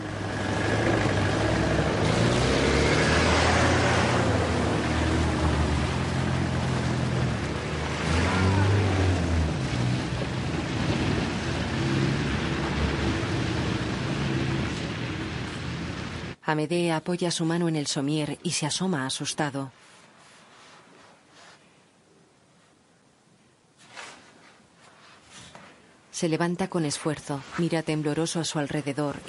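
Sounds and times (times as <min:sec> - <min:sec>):
vans and cars driving away on snowy ground: 0:00.0 - 0:16.4
speech: 0:16.5 - 0:19.9, 0:26.2 - 0:29.2.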